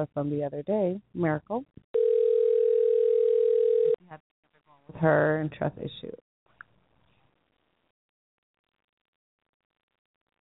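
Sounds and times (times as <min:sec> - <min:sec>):
speech: 0:00.0 - 0:01.9, 0:04.9 - 0:06.3
telephone dial tone: 0:02.0 - 0:04.0.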